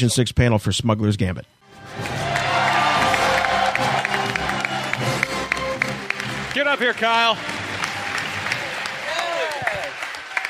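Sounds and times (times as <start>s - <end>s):
speech: 0.0s - 2.2s, 6.6s - 7.6s
audience applause: 1.8s - 10.4s
person cheering: 1.9s - 5.7s, 7.8s - 10.0s.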